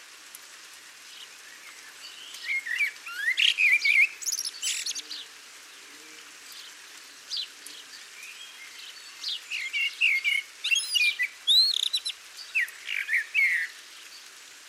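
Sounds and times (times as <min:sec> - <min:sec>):
Eurasian blackbird singing: 0:01.9 - 0:05.3, 0:07.3 - 0:13.8.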